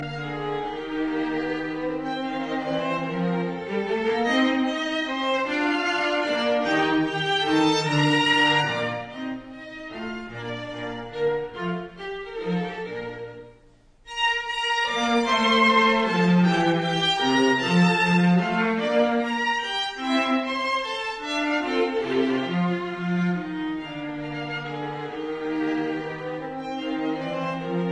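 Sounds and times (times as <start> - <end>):
string quartet playing a minuet: 0.0 - 27.8.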